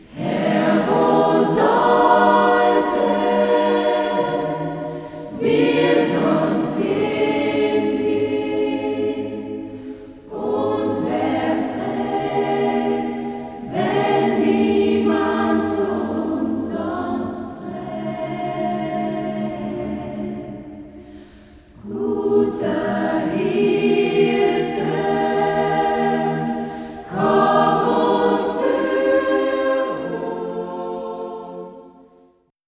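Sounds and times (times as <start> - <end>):
modern choir singing: 0.0 - 32.5.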